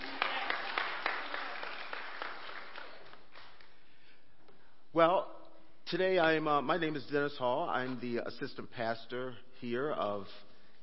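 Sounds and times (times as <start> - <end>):
audience applause: 0.0 - 3.6
speech: 5.0 - 10.5.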